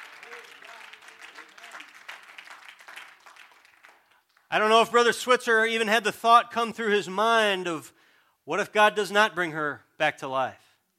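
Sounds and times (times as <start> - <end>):
audience clapping hands: 0.0 - 4.8
speech: 4.5 - 10.6.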